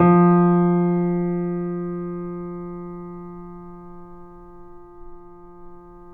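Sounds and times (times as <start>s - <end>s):
grand piano: 0.0s - 6.1s.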